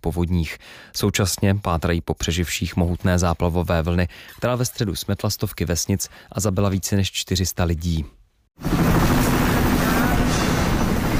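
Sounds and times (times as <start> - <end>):
speech: 0.0 - 9.1
military helicopter: 8.6 - 11.1.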